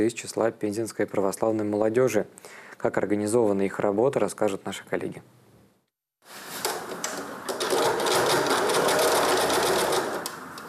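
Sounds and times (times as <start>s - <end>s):
speech: 0.0s - 5.4s
sewing machine stitching cotton masks: 7.5s - 10.6s.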